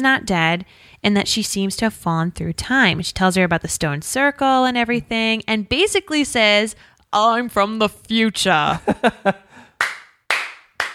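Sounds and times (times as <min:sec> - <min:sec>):
speech: 0:00.0 - 0:09.4
laughter: 0:08.7 - 0:09.5
hand claps: 0:09.8 - 0:10.9.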